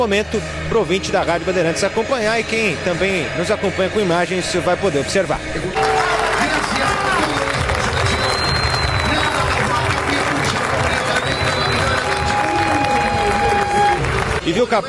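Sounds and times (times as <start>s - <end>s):
speech: 0.0s - 5.9s, 14.5s - 14.8s
stadium crowd of football fans applauding: 5.8s - 14.8s
scattered whistles: 7.9s - 9.6s, 10.9s - 14.0s.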